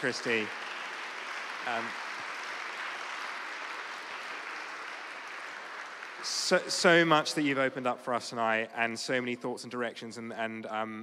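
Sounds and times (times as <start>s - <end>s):
speech: 0.0s - 0.7s, 1.6s - 2.0s, 6.2s - 11.0s
audience round of applause: 0.0s - 8.0s.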